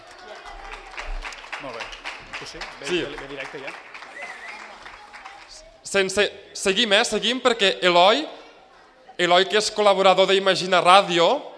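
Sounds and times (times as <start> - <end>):
audience applause: 0.0 - 5.8
speech: 1.6 - 3.9, 5.9 - 8.4, 9.2 - 11.5.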